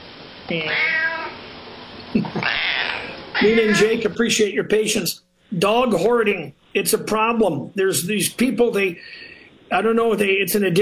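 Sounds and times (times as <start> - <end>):
speech: 0.5 - 1.0, 3.4 - 10.8
cat meowing in the studio: 0.5 - 1.4, 2.4 - 4.0.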